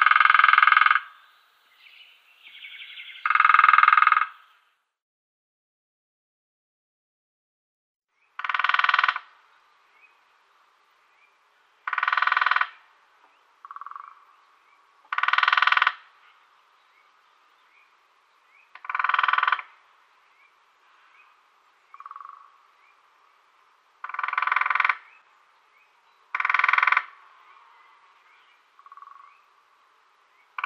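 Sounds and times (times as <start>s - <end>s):
Lesser Spotted Woodpecker drumming: 0.0s - 1.2s, 2.4s - 4.4s, 8.4s - 9.4s, 11.8s - 14.3s, 15.0s - 16.1s, 18.6s - 19.8s, 21.9s - 22.6s, 24.0s - 25.2s, 26.3s - 27.2s, 28.8s - 29.3s.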